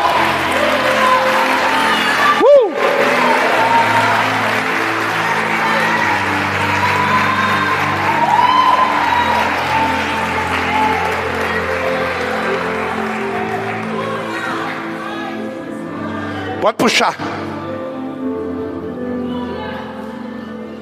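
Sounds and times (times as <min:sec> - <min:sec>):
scattered cheers: 0:00.0 - 0:14.6
large crowd applauding: 0:00.0 - 0:15.1
sustained keyboard chords: 0:00.0 - 0:20.7
speech: 0:16.8 - 0:17.4.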